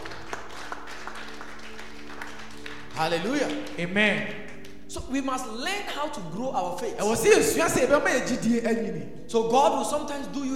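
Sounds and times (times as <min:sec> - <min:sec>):
church congregation clapping during a sermon on growing faith: 0:00.0 - 0:05.8
speech: 0:03.0 - 0:10.5.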